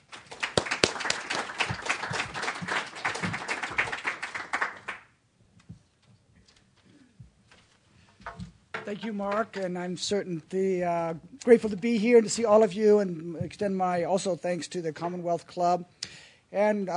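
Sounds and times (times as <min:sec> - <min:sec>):
audience applause welcoming a professor at a Commonwealth Club event: 0:00.0 - 0:05.1
speech: 0:08.8 - 0:16.9.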